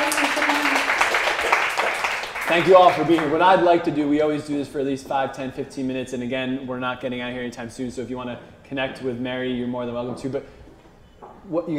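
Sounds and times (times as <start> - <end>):
audience applause: 0.0 - 3.4
speech: 2.5 - 10.6, 11.4 - 11.7.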